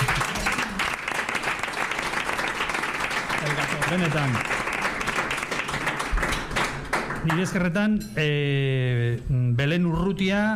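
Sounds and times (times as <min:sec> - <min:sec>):
applause: 0:00.0 - 0:07.7
speech: 0:03.9 - 0:04.6, 0:07.2 - 0:10.5.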